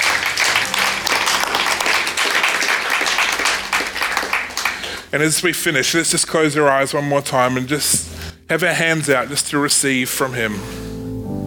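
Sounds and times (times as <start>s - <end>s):
audience applause: 0.0s - 5.1s
speech: 5.1s - 10.9s.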